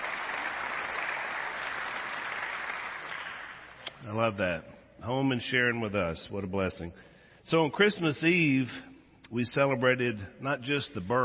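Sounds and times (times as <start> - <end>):
audience applause: 0.0 - 3.8
speech: 4.0 - 11.2.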